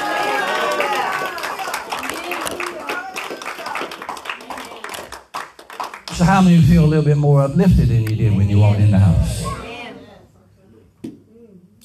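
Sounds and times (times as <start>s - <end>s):
audience hand clapping: 0.0s - 6.7s
speech: 6.2s - 9.4s.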